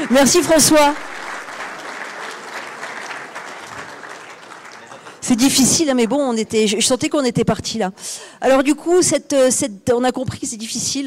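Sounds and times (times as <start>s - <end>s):
speech: 0.0s - 1.2s, 5.3s - 11.0s
audience applause: 0.0s - 6.4s
laughter: 1.6s - 6.4s.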